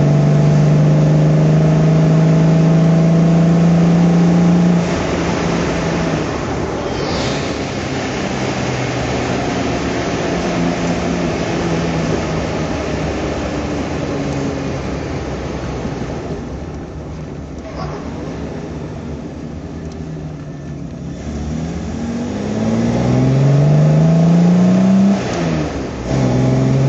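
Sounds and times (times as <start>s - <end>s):
Jaguar XK150S engine during rally drive: 0.0s - 26.8s.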